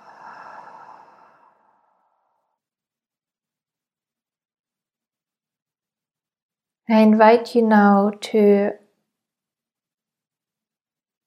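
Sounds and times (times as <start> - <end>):
slow breath out after a deep belly inhale: 0.0 - 2.6
speech: 6.9 - 8.8.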